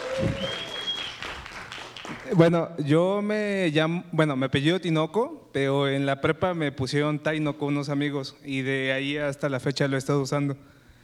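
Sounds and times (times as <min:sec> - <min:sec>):
group applauding: 0:00.0 - 0:02.4
speech: 0:00.2 - 0:00.7, 0:02.3 - 0:10.8
faint thin whistling tone: 0:00.2 - 0:01.2.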